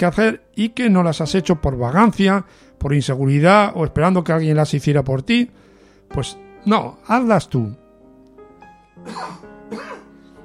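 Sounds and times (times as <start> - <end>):
speech: 0.0 - 7.8, 9.0 - 10.0
man coughing: 9.0 - 10.1.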